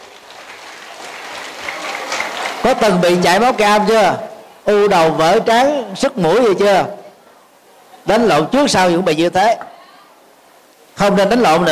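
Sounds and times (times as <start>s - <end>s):
audience applause during a talk to young people: 0.0s - 3.9s
speech: 2.6s - 7.0s, 8.0s - 9.7s, 11.0s - 11.7s.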